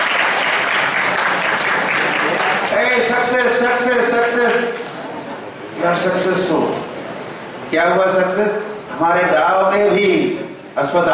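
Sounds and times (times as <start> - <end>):
villagers applauding at a village hospital opening: 0.0 - 5.3
speech: 3.0 - 4.8, 5.8 - 6.8, 7.7 - 11.1.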